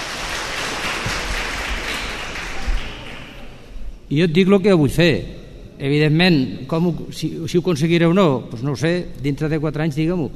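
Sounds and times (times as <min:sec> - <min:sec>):
audience applause: 0:00.0 - 0:03.6
speech: 0:04.1 - 0:10.3.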